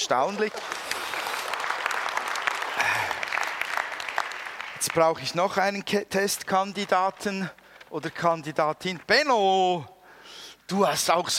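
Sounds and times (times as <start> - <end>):
speech: 0.0 - 0.8, 4.8 - 9.9, 10.7 - 11.3
audience applause: 0.4 - 5.4.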